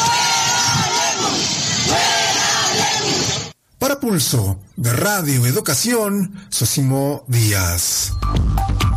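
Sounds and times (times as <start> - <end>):
large crowd chanting and shouting in unison in protest: 0.0 - 3.6
speech: 4.1 - 8.8.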